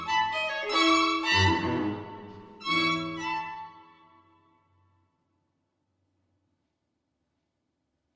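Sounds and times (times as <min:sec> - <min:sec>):
string quartet playing: 0:00.0 - 0:04.0.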